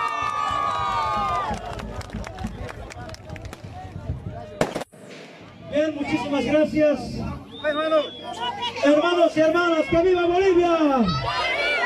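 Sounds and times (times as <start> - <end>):
audience cheering: 0.0 - 3.1
audience applause: 0.0 - 3.5
speech: 5.8 - 11.5.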